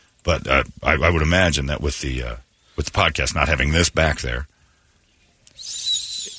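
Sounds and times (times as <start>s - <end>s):
speech: 0.2s - 4.5s
whistling through the nose while breathing: 5.5s - 6.3s.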